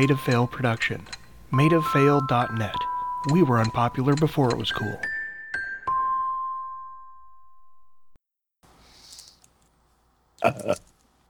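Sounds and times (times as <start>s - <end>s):
speech: 0.0s - 5.1s
burp: 10.4s - 10.9s.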